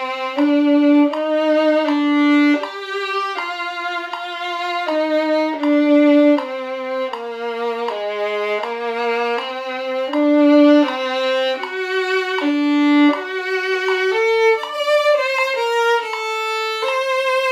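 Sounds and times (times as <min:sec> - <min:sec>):
violin: 0:00.0 - 0:17.5.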